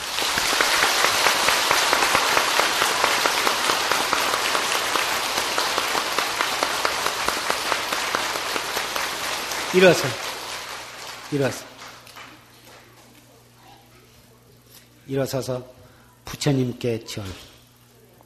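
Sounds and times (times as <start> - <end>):
crowd applauding: 0.0 - 12.9
speech: 9.7 - 10.2, 11.3 - 11.7, 15.1 - 17.5.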